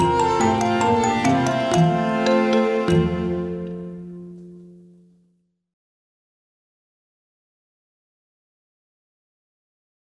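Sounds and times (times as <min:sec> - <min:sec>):
classical piano piece in F major: 0:00.0 - 0:05.2.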